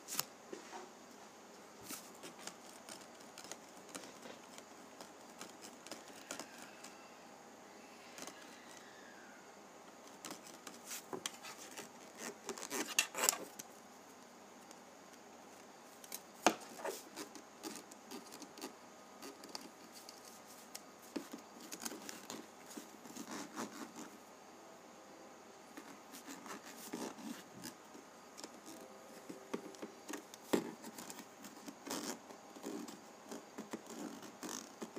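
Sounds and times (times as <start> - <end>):
faint hiss: 0.0 - 34.9
penny ridge rubbing friction noise: 1.8 - 7.1, 10.0 - 13.5, 16.7 - 24.2, 25.8 - 34.9.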